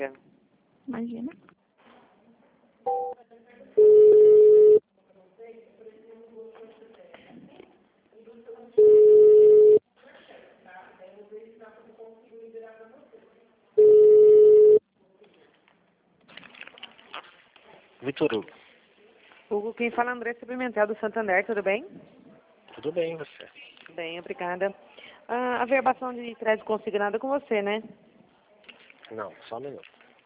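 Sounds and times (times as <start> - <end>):
speech: 0.0 - 0.3, 0.9 - 1.6, 18.0 - 18.6, 19.5 - 22.2, 22.8 - 28.0, 29.1 - 29.9
telephone tones during call transfer: 3.8 - 4.8, 8.8 - 9.8, 13.8 - 14.8.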